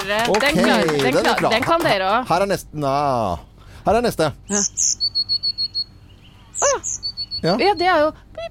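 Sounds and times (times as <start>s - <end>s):
speech: 0.0s - 5.1s, 6.6s - 8.4s
blue tit singing: 4.4s - 8.1s.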